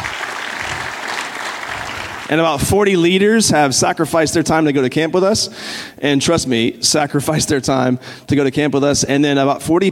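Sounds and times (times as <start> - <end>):
audience clapping: 0.0 - 2.6
speech: 2.3 - 9.9.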